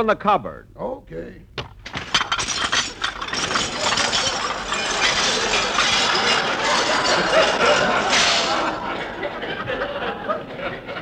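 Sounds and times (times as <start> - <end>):
speech: 0.0 - 1.5
dishwashing machine breaking dishes and clinking crockery: 1.5 - 9.3
laughter: 3.7 - 10.9.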